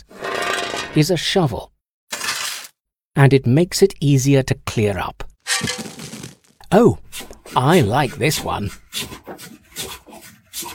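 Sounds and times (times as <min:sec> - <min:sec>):
speech: 0:01.0 - 0:01.7, 0:03.2 - 0:06.0, 0:06.7 - 0:10.0
hand plane smoothing wood: 0:07.1 - 0:10.7.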